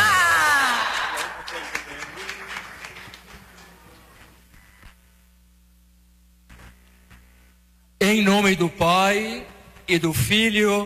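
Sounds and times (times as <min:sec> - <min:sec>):
audience applause: 0:00.0 - 0:04.2
speech: 0:08.1 - 0:10.8.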